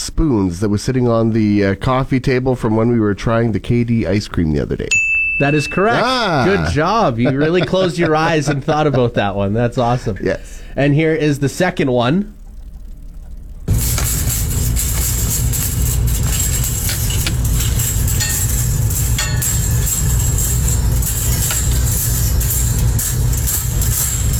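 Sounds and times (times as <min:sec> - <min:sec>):
speech: 0:00.2 - 0:12.4
laughter: 0:05.8 - 0:10.4
coat hangers being shaken: 0:13.7 - 0:24.3.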